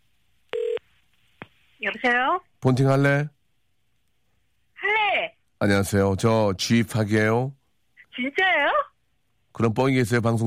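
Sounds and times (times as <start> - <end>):
telephone line beep from an outgoing call: 0.5 - 0.8
speech: 1.9 - 3.4, 5.6 - 7.6, 8.2 - 8.8, 9.6 - 10.4.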